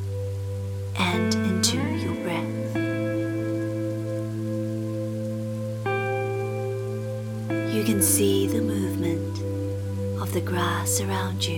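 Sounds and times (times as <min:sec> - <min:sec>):
steady rainfall: 0:00.0 - 0:11.5
speech: 0:01.1 - 0:03.2, 0:07.8 - 0:09.6, 0:10.2 - 0:11.5.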